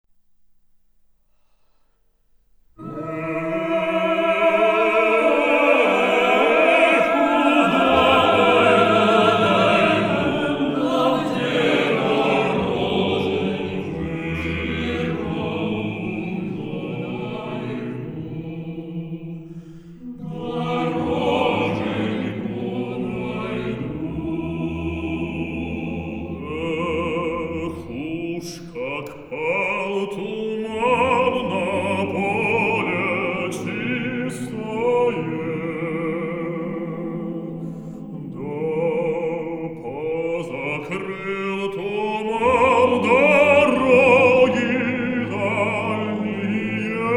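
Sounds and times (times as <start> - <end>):
choir singing: 2.8 - 47.1.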